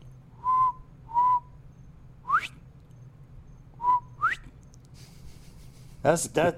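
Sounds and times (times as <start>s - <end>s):
person whistling a bobwhite quail call imitation: 0.4s - 1.5s, 2.3s - 2.5s, 3.8s - 4.5s.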